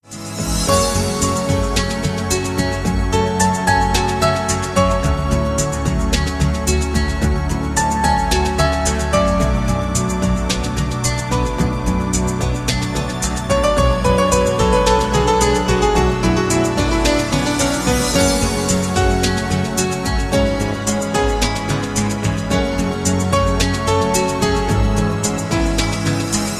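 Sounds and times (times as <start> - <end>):
beautiful piano music: 0.0 - 26.5.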